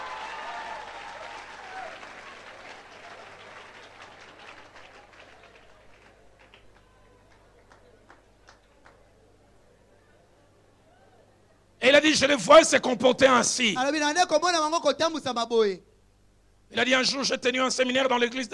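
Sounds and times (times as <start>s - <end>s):
audience applause for an interpreter during a talk: 0.0s - 9.0s
speech: 12.0s - 15.9s, 16.7s - 18.5s.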